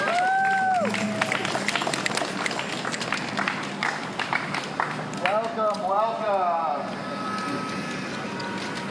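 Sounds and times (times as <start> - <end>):
crowd clapping: 0.0 - 5.8
speech: 0.8 - 1.2
high gliding whistle tone: 6.9 - 8.8.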